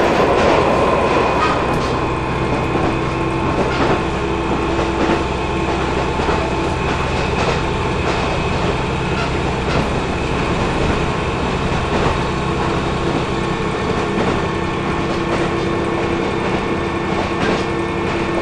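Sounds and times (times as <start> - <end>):
JR KiHa 220 train motor: 0.0 - 18.3.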